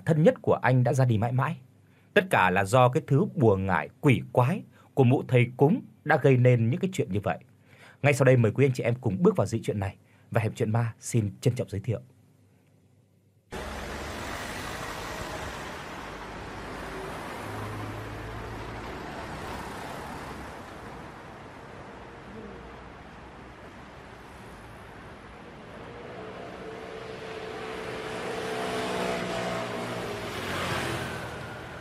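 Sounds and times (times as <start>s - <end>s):
speech: 0.1s - 12.1s
car driving through busy city traffic: 13.5s - 31.7s.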